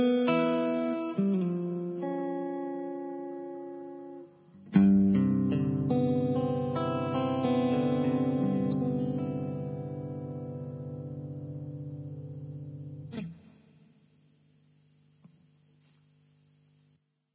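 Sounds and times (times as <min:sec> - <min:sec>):
electric guitar: 0:00.0 - 0:13.6.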